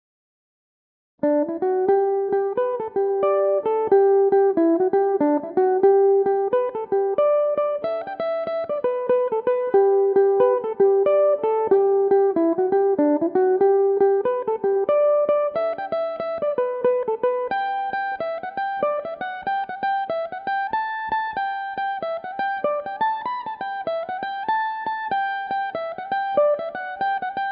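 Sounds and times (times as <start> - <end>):
slip jig in G major on mandolin: 1.2 - 27.5.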